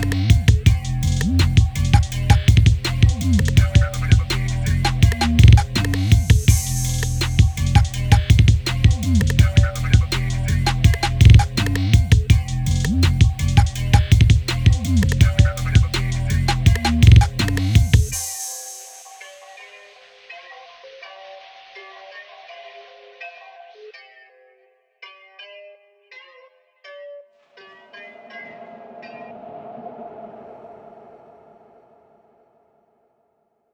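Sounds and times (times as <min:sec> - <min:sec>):
phonk music: 0:00.0 - 0:20.0.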